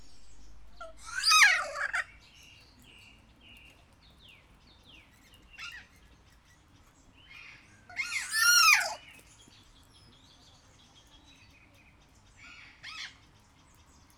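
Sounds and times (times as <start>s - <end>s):
captive kea giving a harsh screech in a zoo at Jászberény: 0.2s - 2.0s, 7.9s - 9.0s.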